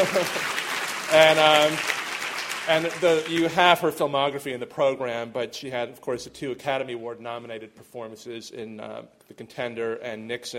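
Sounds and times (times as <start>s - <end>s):
speech: 0.0s - 2.0s, 2.6s - 10.5s
audience applause: 0.0s - 3.8s.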